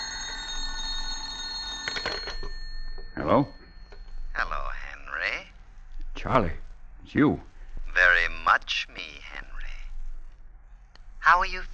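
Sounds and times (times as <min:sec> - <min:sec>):
telephone bell ringing: 0:00.0 - 0:04.3
speech: 0:03.2 - 0:03.6, 0:06.2 - 0:09.1, 0:11.3 - 0:11.7.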